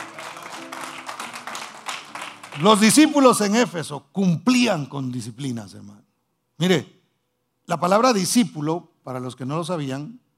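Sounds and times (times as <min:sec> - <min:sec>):
audience applauding: 0:00.0 - 0:03.6
speech: 0:02.6 - 0:07.0, 0:07.7 - 0:10.2.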